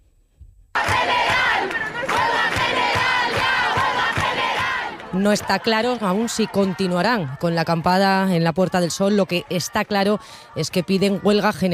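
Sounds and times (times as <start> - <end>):
large crowd of protesters chanting: 0.8 - 11.7
speech: 5.2 - 11.7.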